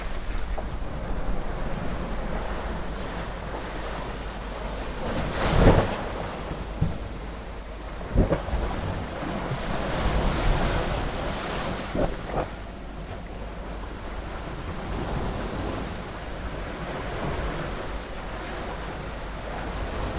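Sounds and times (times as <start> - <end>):
sea: 0.0 - 20.1.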